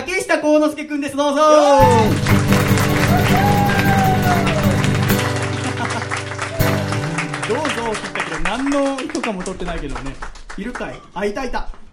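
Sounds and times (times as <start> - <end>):
speech: 0.4 - 2.4, 3.1 - 3.6, 7.5 - 11.8
laughter: 1.8 - 9.2
hand clapping: 1.8 - 11.0.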